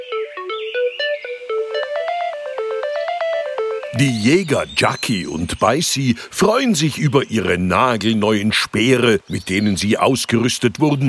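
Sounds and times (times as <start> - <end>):
alarm clock playing an electronic ringtone: 0.0 - 4.7
speech: 4.0 - 11.0.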